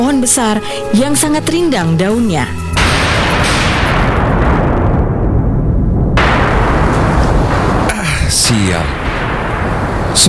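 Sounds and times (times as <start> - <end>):
speech: 0.0 - 3.5, 8.5 - 9.0
strong wind: 2.8 - 10.2
thunder in a storm: 2.8 - 10.2.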